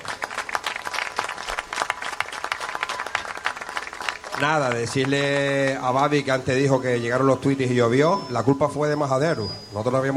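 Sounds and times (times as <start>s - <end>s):
audience applause: 0.0s - 6.1s
speech: 4.4s - 10.1s.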